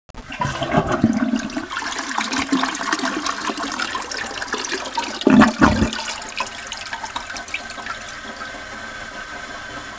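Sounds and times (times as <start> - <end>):
toilet flush: 0.1 - 9.9.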